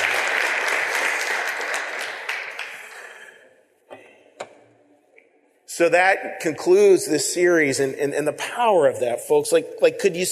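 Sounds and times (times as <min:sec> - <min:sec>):
warm round of applause: 0:00.0 - 0:03.3
speech: 0:05.8 - 0:10.3.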